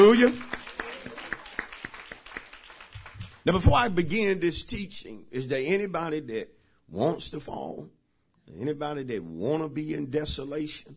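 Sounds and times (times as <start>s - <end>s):
speech: 0.0s - 0.6s, 3.4s - 10.9s
audience clapping in praise: 0.0s - 3.8s.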